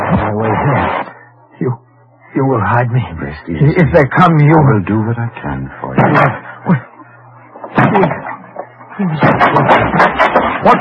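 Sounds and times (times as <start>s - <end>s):
low steady hum: 0.0s - 10.8s
speech: 1.6s - 6.9s, 7.7s - 8.3s, 9.0s - 10.8s
door being broken down: 7.6s - 8.4s, 9.2s - 10.8s.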